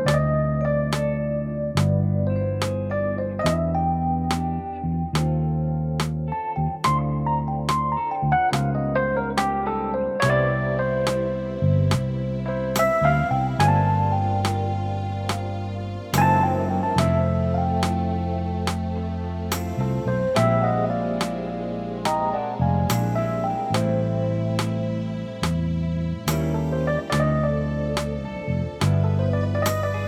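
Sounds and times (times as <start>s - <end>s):
concert backing track: 0.0s - 30.0s.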